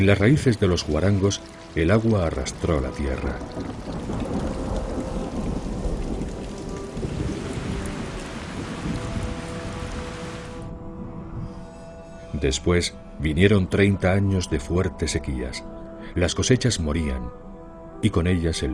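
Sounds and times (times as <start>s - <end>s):
speech: 0.0s - 4.4s, 12.4s - 17.4s, 18.0s - 18.7s
heavy rain: 0.0s - 10.7s
thunder rumbling: 0.7s - 11.3s.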